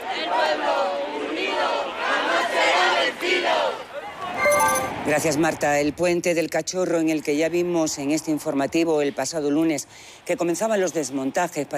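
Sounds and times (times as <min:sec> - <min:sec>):
crowd at a protest march chanting and shouting: 0:00.0 - 0:04.6
speech: 0:05.1 - 0:11.7.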